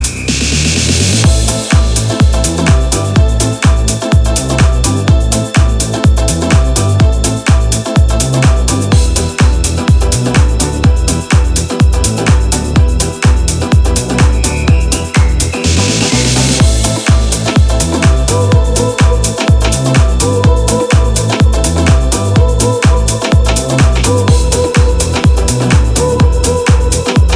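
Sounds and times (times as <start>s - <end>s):
Latin house dub mix: 0.0s - 27.3s.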